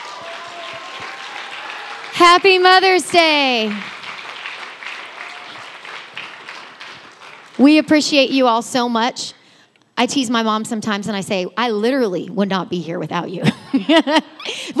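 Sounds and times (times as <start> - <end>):
audience round of applause: 0.0 - 7.6
speech: 2.2 - 3.9, 7.6 - 9.4, 10.0 - 14.7.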